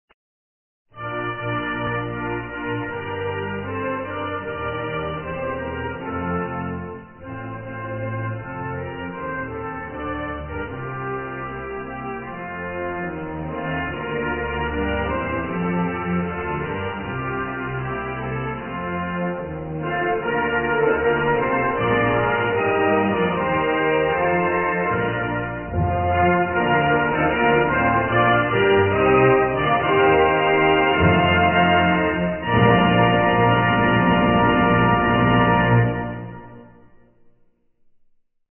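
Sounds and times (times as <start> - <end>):
national anthem: 1.0 - 36.7.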